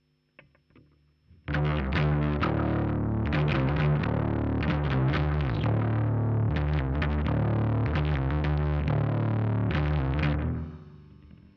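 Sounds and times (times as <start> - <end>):
bass guitar recorded by direct input: 1.4 - 11.5.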